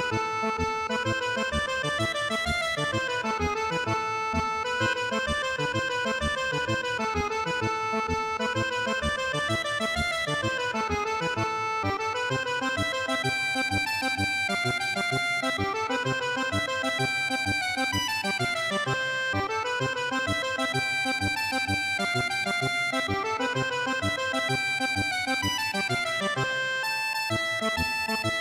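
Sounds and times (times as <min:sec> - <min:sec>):
accordion playing a tarantella: 0:00.0 - 0:28.3.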